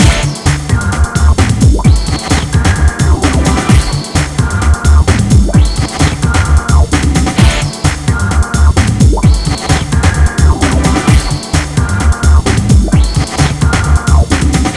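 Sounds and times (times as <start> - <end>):
hardcore breakbeat in A minor: 0.0 - 14.7.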